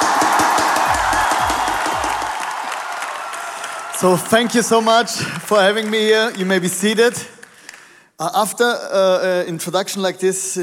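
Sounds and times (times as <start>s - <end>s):
audience applause for a guest speaker: 0.0s - 7.8s
speech: 4.0s - 7.4s, 8.2s - 10.6s.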